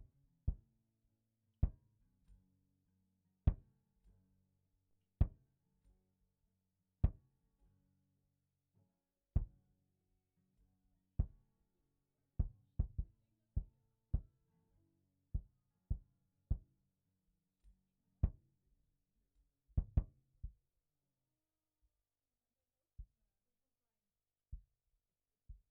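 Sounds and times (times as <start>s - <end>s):
kick drum: 3.5s - 3.7s, 5.2s - 5.4s, 7.0s - 7.2s, 9.4s - 9.6s, 11.2s - 11.4s, 12.4s - 14.4s, 15.4s - 16.8s, 18.2s - 18.5s, 19.8s - 20.7s, 23.0s - 23.2s, 24.5s - 24.8s, 25.5s - 25.6s.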